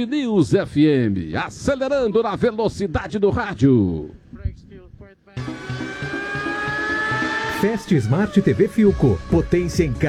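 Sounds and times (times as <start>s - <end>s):
speech: 0.0s - 4.2s, 7.6s - 10.0s
cars arriving at the starting grid for the Grande Prêmio da Catalunha: 5.4s - 10.0s.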